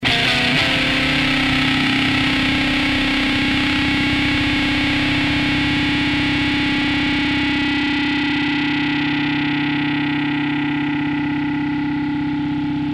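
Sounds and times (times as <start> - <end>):
sustained distorted lead through 2x12 cabinet: 0.0 - 12.9.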